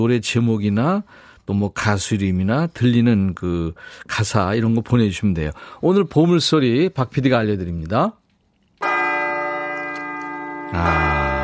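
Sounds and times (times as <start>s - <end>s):
speech: 0.0s - 8.2s, 10.7s - 11.2s
solemn bell ringing: 8.8s - 11.4s.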